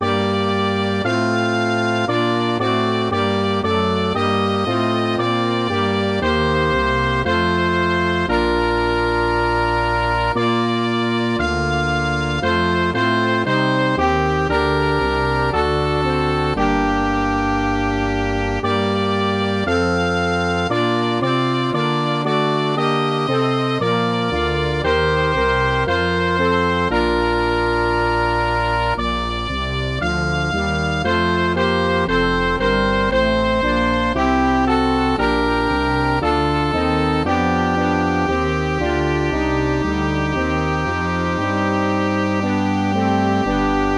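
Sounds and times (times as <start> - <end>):
MIDI music: 0.0 - 43.9.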